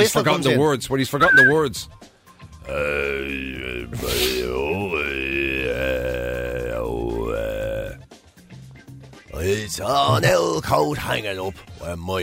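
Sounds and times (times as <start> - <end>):
speech: 0.0 - 2.1, 2.7 - 6.1, 9.4 - 12.2
Mongolian throat singing: 1.2 - 1.6, 2.6 - 8.0.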